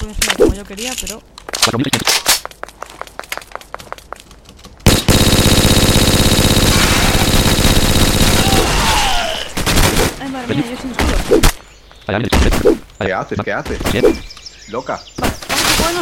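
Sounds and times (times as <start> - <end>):
speech: 0.1 - 2.5, 12.1 - 16.0
turret gunfire in a video game: 4.8 - 10.3.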